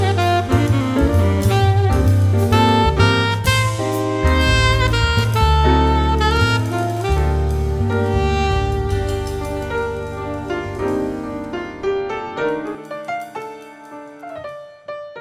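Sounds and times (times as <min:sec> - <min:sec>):
saxophone playing: 0:00.0 - 0:11.1.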